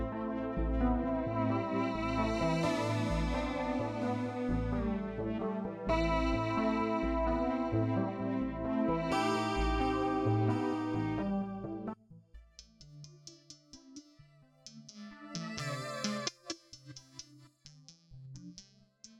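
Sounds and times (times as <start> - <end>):
synths: 0.0 - 12.0, 14.7 - 16.5.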